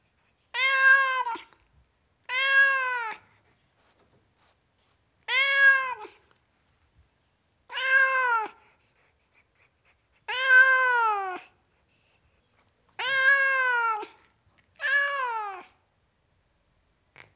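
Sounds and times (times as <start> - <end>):
tom cat meowing: 0.6 - 1.6, 2.2 - 3.2, 5.3 - 6.2, 7.7 - 8.6, 10.3 - 11.4, 13.0 - 14.2, 14.8 - 15.8.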